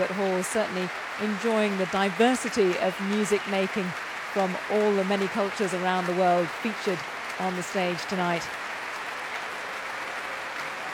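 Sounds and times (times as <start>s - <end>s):
speech: 0.0s - 8.6s
audience and concert orchestra applause at the Royal Albert Hall: 0.0s - 10.9s.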